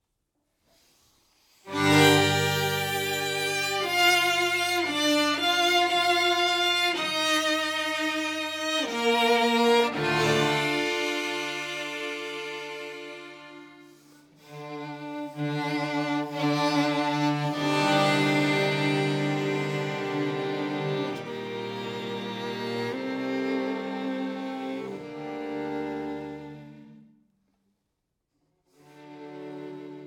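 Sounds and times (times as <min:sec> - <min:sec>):
string quartet in G minor: 0:01.6 - 0:27.2, 0:28.8 - 0:30.0.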